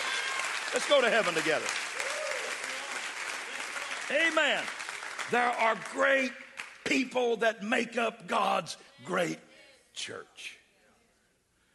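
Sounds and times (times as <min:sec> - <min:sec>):
audience clapping hands: 0:00.0 - 0:07.4
speech: 0:00.7 - 0:01.9, 0:04.1 - 0:10.6.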